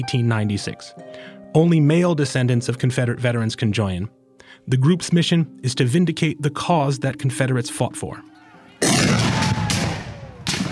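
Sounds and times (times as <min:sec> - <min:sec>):
speech: 0:00.0 - 0:08.9
musket fire during a Civil War reenactment mock battle: 0:08.8 - 0:10.6.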